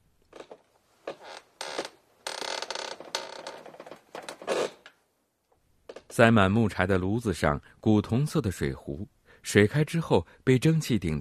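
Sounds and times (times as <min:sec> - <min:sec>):
old wooden floor creaking in a music classroom: 0:00.3 - 0:05.0, 0:05.9 - 0:06.2
speech: 0:06.2 - 0:11.2.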